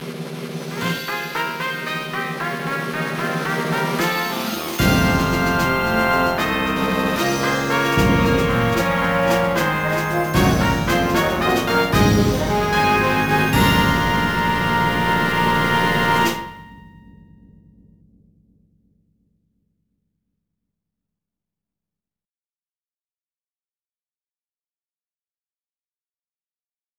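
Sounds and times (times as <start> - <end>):
event fanfare: 0.7 - 17.0.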